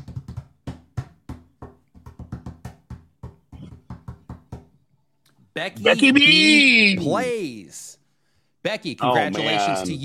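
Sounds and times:
hands drumming a roll on a hard surface for a giveaway draw: 0:00.0 - 0:04.8
speech: 0:05.6 - 0:08.0, 0:08.6 - 0:10.0.

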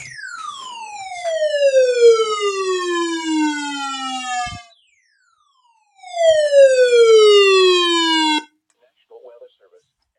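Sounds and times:
weather radio emergency alert tone: 0:00.0 - 0:08.5.

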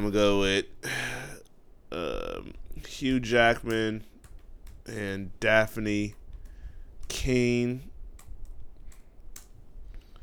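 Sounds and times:
speech: 0:00.0 - 0:01.1, 0:01.9 - 0:04.1, 0:04.8 - 0:06.2, 0:07.1 - 0:07.9
typing on a computer keyboard with one hand: 0:03.2 - 0:05.2, 0:08.1 - 0:09.6.

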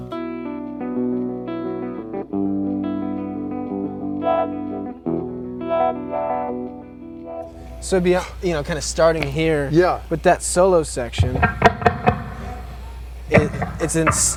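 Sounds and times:
electric guitar through mono wah pedal: 0:00.0 - 0:07.8, 0:11.2 - 0:14.3
speech: 0:07.8 - 0:11.7, 0:13.8 - 0:14.3.

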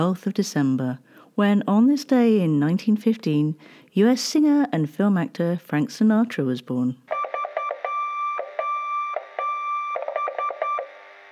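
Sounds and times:
speech: 0:00.0 - 0:07.1
Morse code SOS signal in electronic beeps: 0:07.1 - 0:11.0.

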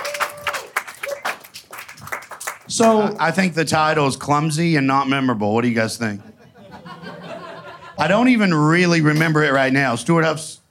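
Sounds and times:
round of applause: 0:00.0 - 0:03.1
speech: 0:02.8 - 0:06.3, 0:08.0 - 0:10.5
laughter: 0:06.2 - 0:08.1.

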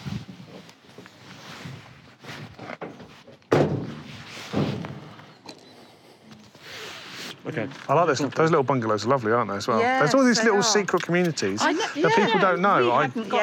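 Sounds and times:
van door being shut while the van is locked up: 0:03.5 - 0:05.1
speech: 0:07.5 - 0:13.4.

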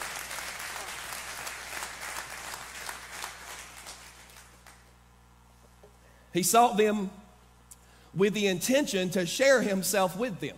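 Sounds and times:
audience hand clapping: 0:00.0 - 0:05.0
speech: 0:06.3 - 0:07.2, 0:08.2 - 0:10.5.

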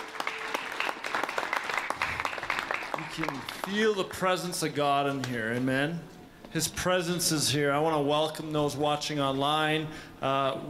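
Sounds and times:
church audience in Edmonton applauding the worship team: 0:00.0 - 0:04.0
speech: 0:03.2 - 0:10.6.

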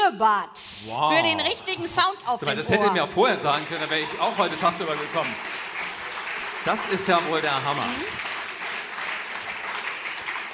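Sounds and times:
speech: 0:00.1 - 0:05.6, 0:06.6 - 0:08.3
audience applause: 0:03.2 - 0:10.5.

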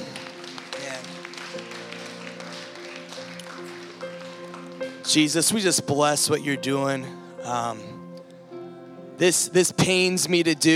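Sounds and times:
audience applause: 0:00.0 - 0:06.2
speech: 0:05.1 - 0:08.0, 0:09.2 - 0:10.7.

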